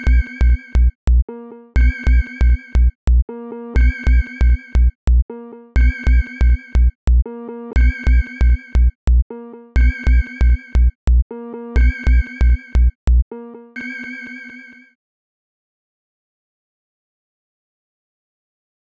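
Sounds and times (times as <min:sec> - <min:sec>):
sine wave tone: 0:00.0 - 0:01.0, 0:01.8 - 0:03.0, 0:03.8 - 0:05.0, 0:05.8 - 0:07.0, 0:07.8 - 0:09.0, 0:09.8 - 0:11.0, 0:11.8 - 0:13.0, 0:13.8 - 0:15.0.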